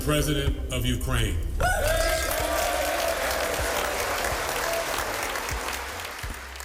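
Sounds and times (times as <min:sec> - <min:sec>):
speech: 0:00.1 - 0:01.5
standing ovation applause in the US Congress: 0:01.7 - 0:06.6.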